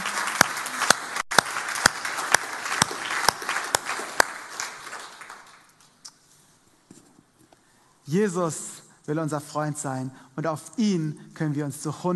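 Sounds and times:
audience applauding: 0:00.0 - 0:05.7
speech: 0:08.1 - 0:12.1.

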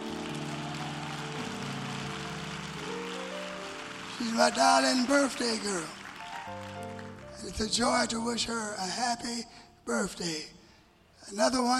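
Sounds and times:
audience clapping hands: 0:00.0 - 0:08.2
speech: 0:04.2 - 0:06.6, 0:07.4 - 0:10.6, 0:11.2 - 0:11.7.

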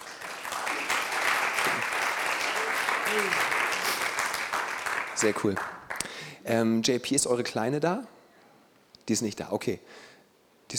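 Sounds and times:
audience applause: 0:00.0 - 0:06.0
speech: 0:03.1 - 0:03.6, 0:05.2 - 0:05.8, 0:06.4 - 0:08.2, 0:09.1 - 0:10.1.

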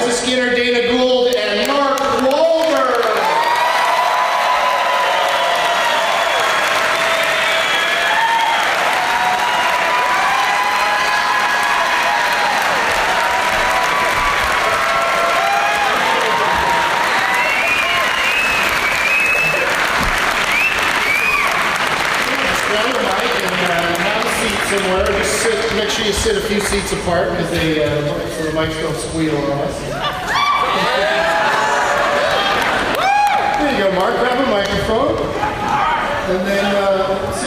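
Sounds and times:
speech: 0:00.0 - 0:01.2, 0:26.2 - 0:30.0
audience applause welcoming guests: 0:01.1 - 0:27.5, 0:30.1 - 0:36.9
scattered cheers and whoops: 0:03.0 - 0:21.8, 0:29.9 - 0:33.6.

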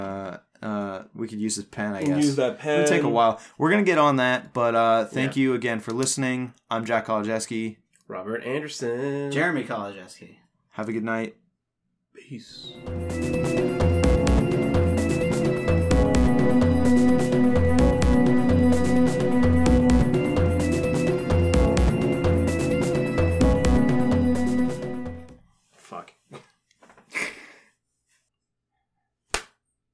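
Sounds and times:
speech: 0:01.2 - 0:11.4, 0:12.2 - 0:13.7
dense music: 0:12.7 - 0:25.3
single sharp hand clap: 0:29.3 - 0:29.6.

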